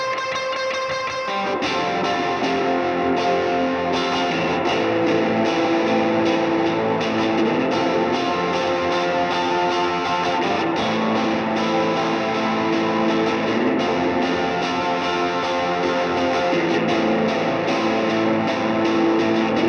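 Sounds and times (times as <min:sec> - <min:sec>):
guitar recorded mono with an SM57 microphone: 0:00.0 - 0:19.6.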